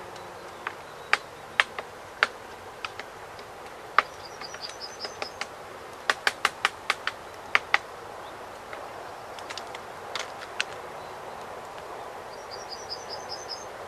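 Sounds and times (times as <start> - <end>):
great spotted woodpecker kik calls: 0.1 - 7.9, 11.7 - 13.7.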